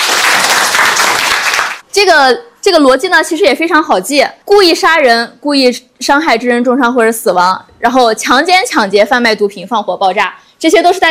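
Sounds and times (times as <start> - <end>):
audience applause during a law lecture: 0.0 - 1.8
speech: 2.0 - 11.0.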